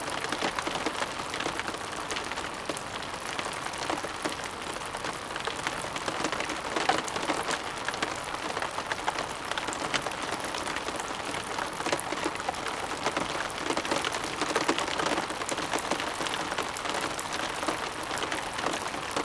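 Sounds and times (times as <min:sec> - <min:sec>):
rain softly trickling in a rainforest: 0:00.0 - 0:19.2.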